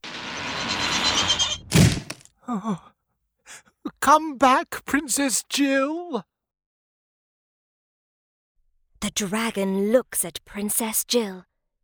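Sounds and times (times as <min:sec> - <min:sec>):
door opening: 0:00.0 - 0:02.3
heavy wooden thunk of a door: 0:01.7 - 0:02.3
speech: 0:02.5 - 0:02.9, 0:04.0 - 0:06.3, 0:09.1 - 0:11.5.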